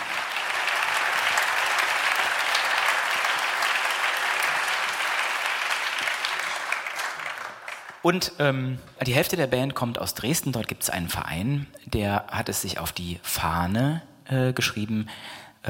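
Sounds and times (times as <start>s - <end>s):
audience applause and crowd noise at a live band concert: 0.0s - 8.2s
speech: 8.0s - 15.6s.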